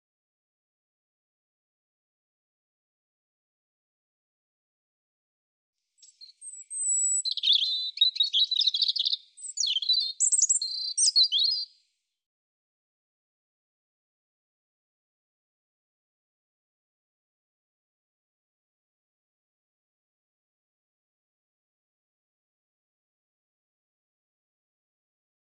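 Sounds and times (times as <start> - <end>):
European robin singing: 6.0 - 11.8.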